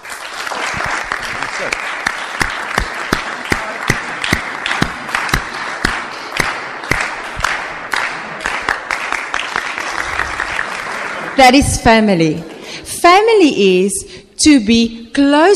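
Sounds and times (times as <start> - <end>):
audience clapping together: 0.0 - 12.9
speech: 1.6 - 1.9, 11.4 - 15.5.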